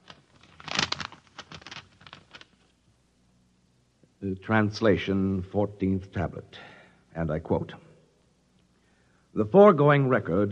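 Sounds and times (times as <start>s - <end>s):
paper envelope being opened: 0.0s - 2.6s
speech: 4.2s - 7.8s, 9.4s - 10.5s.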